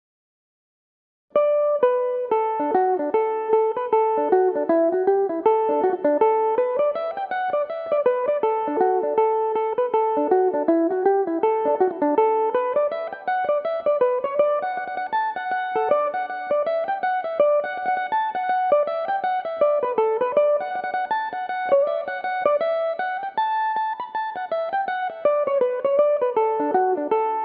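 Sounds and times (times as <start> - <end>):
folk tune in D major: 1.4 - 27.4.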